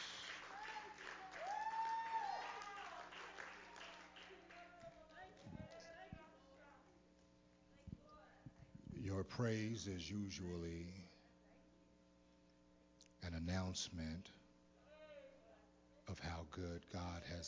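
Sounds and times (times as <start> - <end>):
audience clapping hands in praise: 0.0 - 6.0
speech: 9.1 - 11.1, 13.3 - 14.4, 16.1 - 17.4.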